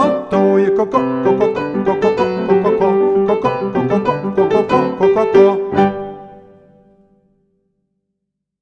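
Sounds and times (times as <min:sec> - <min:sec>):
person doing speech therapy vocal warm-up: 0:00.0 - 0:05.8.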